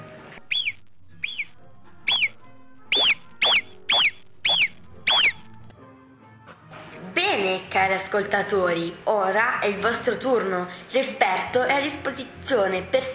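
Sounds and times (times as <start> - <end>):
alpine animal's alarm whistle: 0.4 - 5.5
speech: 7.4 - 13.1.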